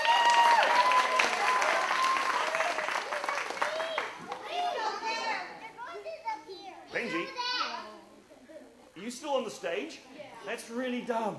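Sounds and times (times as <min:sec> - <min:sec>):
audience applause: 0:00.0 - 0:04.6
children cheering and whooping: 0:00.0 - 0:05.4
speech: 0:09.1 - 0:11.3.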